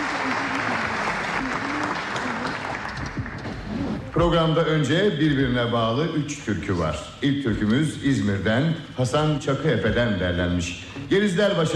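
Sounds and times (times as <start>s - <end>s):
audience applauding a radio choir and conductor at a Turkish folk music programme: 0.0s - 4.0s
speech: 4.2s - 11.7s.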